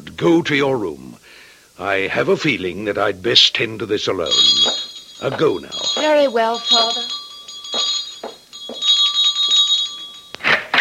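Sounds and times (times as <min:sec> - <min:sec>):
speech: 0:00.2 - 0:01.1, 0:01.8 - 0:07.2
doorbell ringing: 0:04.3 - 0:10.6.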